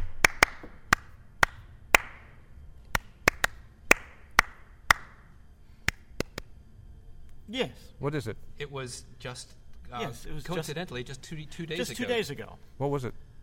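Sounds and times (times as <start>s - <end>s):
clapped and tapped rhythm of a birthday song: 0.0s - 2.3s, 2.9s - 5.2s, 5.9s - 6.5s
speech: 7.5s - 13.2s.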